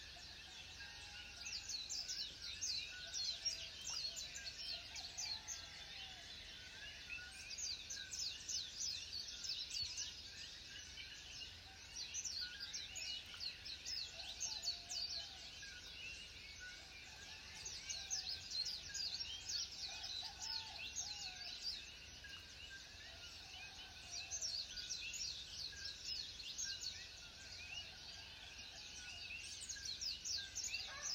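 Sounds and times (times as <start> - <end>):
birds singing in the morning: 0.0 - 31.1.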